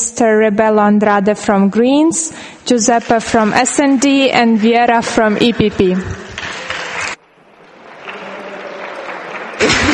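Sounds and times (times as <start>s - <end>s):
speech: 0.2s - 6.5s
clapping in a parliament chamber: 7.8s - 9.9s.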